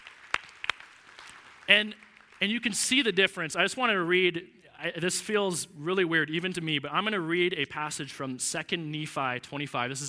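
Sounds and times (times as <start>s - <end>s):
scattered handclaps: 0.0s - 2.4s
speech: 1.7s - 10.0s.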